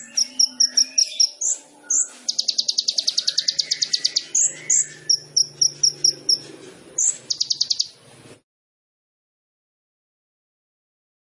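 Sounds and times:
sunbird high chips and notes: 0.0s - 8.0s.

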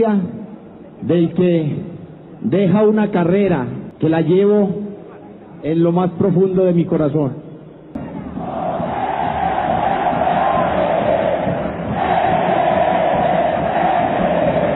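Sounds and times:
speech: 0.0s - 0.4s, 1.0s - 4.8s, 5.6s - 7.4s
stadium crowd loudly cheering its hero: 8.0s - 14.7s.

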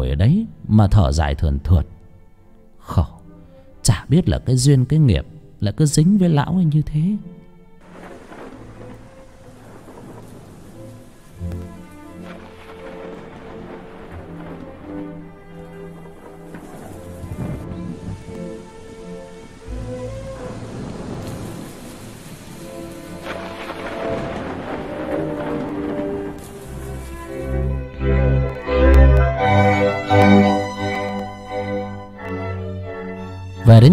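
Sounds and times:
speech: 0.0s - 2.0s, 2.9s - 3.2s, 3.8s - 7.4s
sustained tonal music: 0.0s - 33.9s
deep rumbles of thunder: 7.8s - 32.2s
pouring rain: 7.8s - 33.9s.

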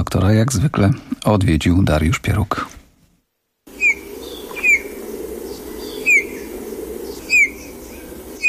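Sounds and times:
speech: 0.0s - 2.8s
Eurasian bullfinch piping calls: 3.7s - 8.4s.

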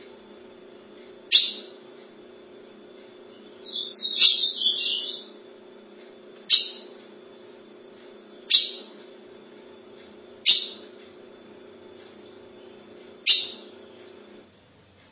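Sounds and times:
steady low hum: 0.0s - 14.5s
ultramarine grosbeak singing: 1.3s - 1.9s, 3.1s - 5.6s, 6.4s - 9.3s, 10.4s - 11.2s, 12.2s - 14.2s.

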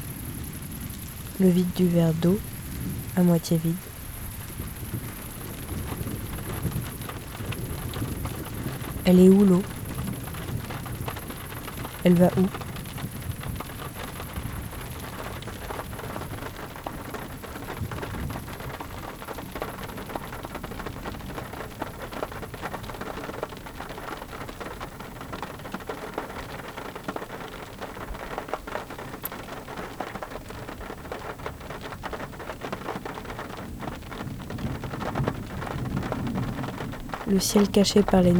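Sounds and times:
heavy rain: 0.0s - 38.3s
speech: 1.4s - 2.5s, 3.2s - 3.9s, 9.0s - 9.8s, 12.0s - 12.6s, 37.4s - 38.3s
rumbling thunder: 3.8s - 23.3s, 32.9s - 38.3s.

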